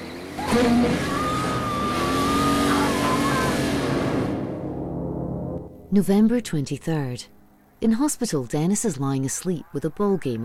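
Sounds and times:
tires burning rubber: 0:00.0 - 0:04.8
car Christine engine roaring in a chase: 0:00.0 - 0:05.8
thin high whine: 0:00.0 - 0:08.1
speech: 0:00.5 - 0:01.2, 0:05.9 - 0:10.4.

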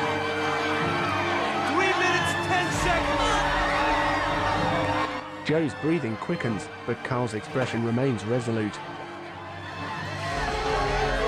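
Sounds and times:
crowd cheering someone on: 0:00.0 - 0:11.2
speech: 0:05.5 - 0:09.0.

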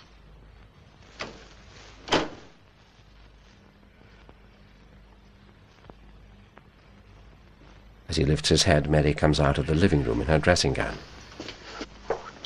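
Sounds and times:
front door shutting: 0:02.0 - 0:02.5
speech: 0:08.1 - 0:11.2.

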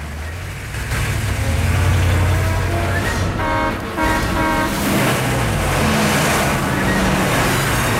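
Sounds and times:
armored trucks rolling along a downtown street with heavy engines rumbling: 0:00.0 - 0:07.9
horn-like tonal blare: 0:02.1 - 0:05.2.

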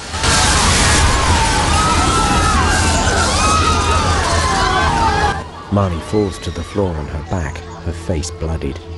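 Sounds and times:
train crashing: 0:00.0 - 0:05.6
speech: 0:05.7 - 0:08.9.

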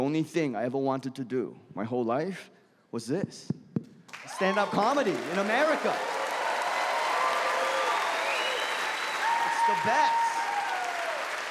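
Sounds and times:
speech: 0:00.0 - 0:03.6, 0:04.2 - 0:06.2, 0:09.7 - 0:10.2
audience applauding at a stand-up comedy show: 0:04.1 - 0:11.4.

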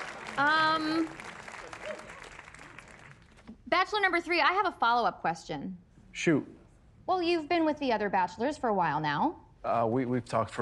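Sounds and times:
audience applause: 0:00.0 - 0:03.5
speech: 0:00.4 - 0:01.3, 0:03.7 - 0:10.6.

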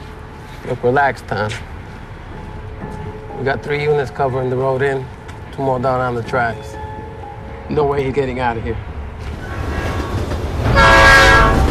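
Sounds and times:
train passing at night: 0:00.0 - 0:11.6
speech: 0:00.7 - 0:01.7, 0:02.8 - 0:06.8, 0:07.7 - 0:08.9
train horn sounding a sustained multi-toned blast: 0:10.6 - 0:11.6.

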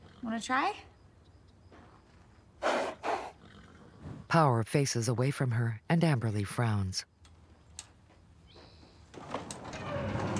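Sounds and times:
speech: 0:00.2 - 0:00.9, 0:04.3 - 0:07.1
rumbling rustle: 0:08.9 - 0:10.3
sliding door rolling shut with a squeak: 0:09.1 - 0:10.3.

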